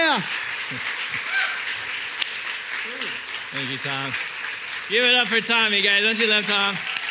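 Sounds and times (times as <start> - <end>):
audience applause welcoming a pastor: 0.0 - 7.1
speech: 0.2 - 1.4, 2.8 - 4.3, 4.9 - 6.9.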